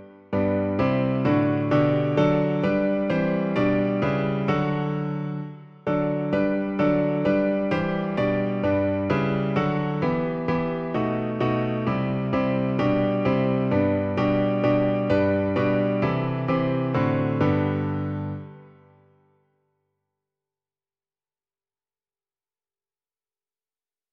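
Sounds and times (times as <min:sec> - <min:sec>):
piano arrangement of a song: 0:00.0 - 0:19.3.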